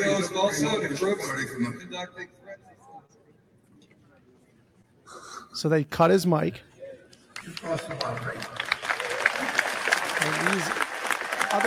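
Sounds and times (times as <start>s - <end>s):
speech: 0.2s - 3.2s, 5.1s - 6.7s, 7.6s - 8.6s, 10.2s - 10.9s
crowd applause: 7.4s - 11.6s
crowd cheering and whooping: 8.9s - 10.6s.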